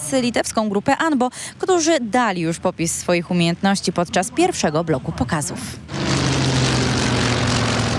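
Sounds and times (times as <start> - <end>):
speech: 0.1 - 6.1
aerobatic display propeller planes roaring overhead at an air show: 4.5 - 7.9.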